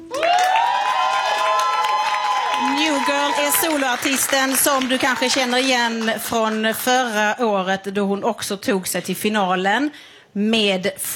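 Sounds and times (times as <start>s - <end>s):
crowd cheering for a live act at a music competition final: 0.0s - 6.6s
scattered clapping: 0.2s - 7.0s
speech: 2.8s - 11.1s.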